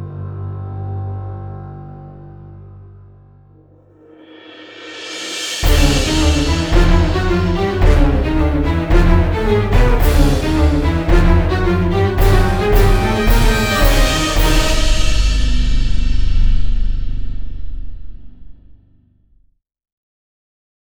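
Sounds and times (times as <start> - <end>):
suspense and horror music stabs: 5.5 - 17.9.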